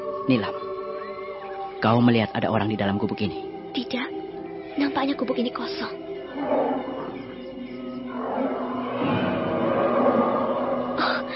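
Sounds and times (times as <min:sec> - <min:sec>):
speech: 0:00.3 - 0:00.6, 0:01.8 - 0:04.1, 0:04.8 - 0:06.7
tiger growling: 0:06.2 - 0:11.3.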